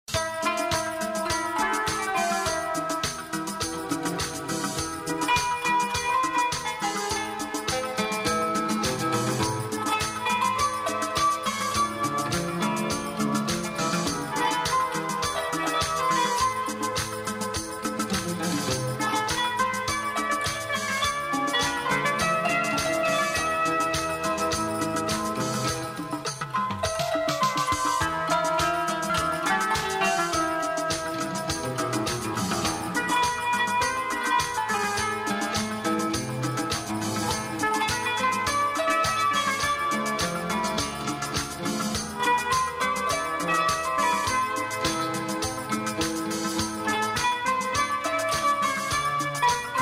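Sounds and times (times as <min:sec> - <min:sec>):
happy Turkish instrumental music: 0:00.0 - 0:49.7.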